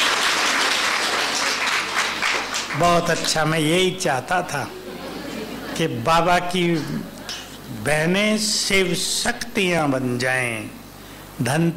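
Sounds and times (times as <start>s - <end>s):
crowd applause at a spiritual gathering: 0.0s - 3.4s
speech: 2.8s - 4.8s, 5.8s - 7.1s, 7.8s - 10.8s, 11.4s - 11.7s
laughter: 4.5s - 7.4s.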